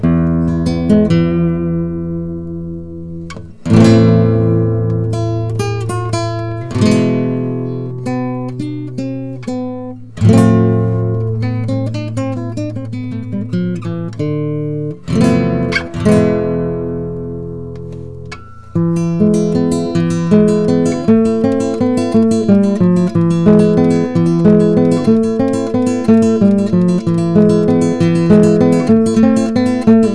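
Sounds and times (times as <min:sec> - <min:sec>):
composite Spanish guitar: 0:00.0 - 0:30.1.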